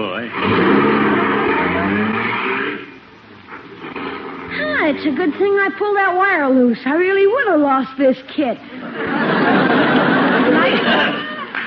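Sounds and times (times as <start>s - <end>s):
car engine starting and driving off: 0.0s - 5.5s
speech: 5.0s - 9.6s
laughter: 8.8s - 11.6s.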